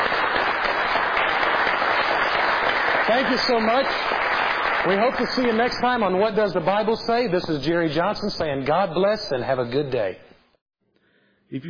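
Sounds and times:
audience applause on a Bible-teaching program: 0:00.0 - 0:06.2
speech: 0:03.1 - 0:04.2, 0:04.8 - 0:10.3.

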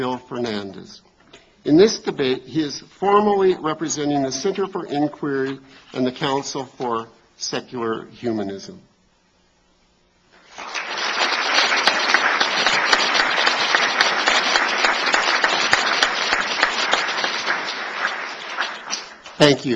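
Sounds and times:
speech: 0:00.0 - 0:08.9, 0:19.4 - 0:19.7
audience applause: 0:10.4 - 0:19.7.

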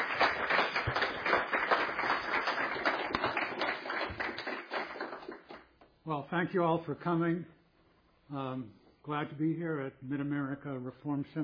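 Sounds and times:
audience applause: 0:00.0 - 0:05.6
speech: 0:06.1 - 0:07.6, 0:08.3 - 0:11.4.

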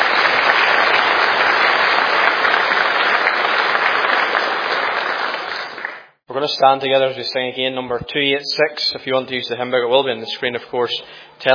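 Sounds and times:
audience applause: 0:00.0 - 0:06.2
speech: 0:06.4 - 0:11.5.

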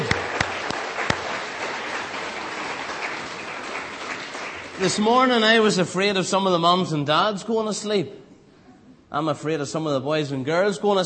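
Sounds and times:
audience applause: 0:00.0 - 0:05.4
speech: 0:04.8 - 0:08.2, 0:09.1 - 0:11.0.

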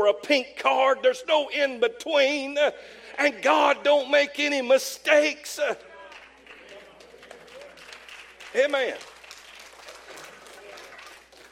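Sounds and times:
speech: 0:00.0 - 0:05.9, 0:08.5 - 0:09.1
audience clapping: 0:06.0 - 0:11.5.

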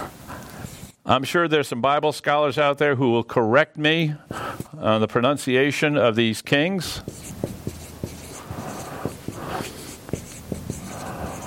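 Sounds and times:
marker writing names on a board: 0:00.0 - 0:01.0, 0:06.9 - 0:11.4
speech: 0:01.1 - 0:07.3.

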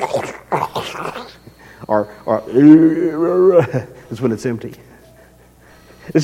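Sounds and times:
voice imitating a growling stomach: 0:00.0 - 0:01.4
speech: 0:01.9 - 0:04.9.

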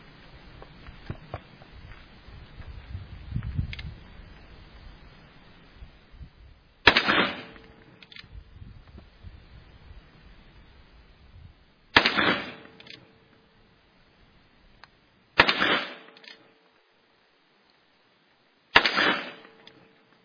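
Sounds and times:
faint wind and rustling: 0:00.0 - 0:20.2
pistol and rifle gunshots at a shooting range: 0:06.8 - 0:07.7, 0:12.0 - 0:12.8, 0:15.4 - 0:16.2, 0:18.7 - 0:19.6.

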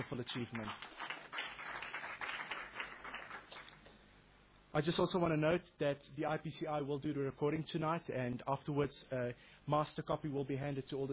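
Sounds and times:
speech: 0:00.0 - 0:01.0, 0:04.7 - 0:11.1
audience applauding: 0:00.0 - 0:03.9.

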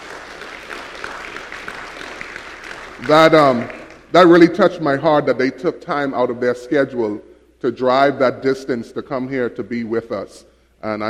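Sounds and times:
audience applause: 0:00.0 - 0:04.1
speech: 0:03.0 - 0:11.0.

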